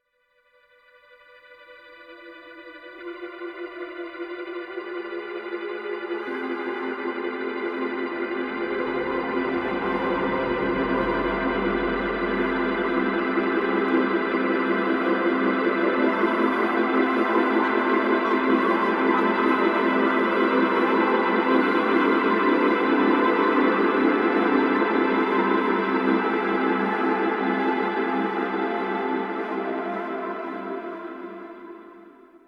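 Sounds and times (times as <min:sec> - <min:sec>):
instrumental music: 0:02.2 - 0:32.4.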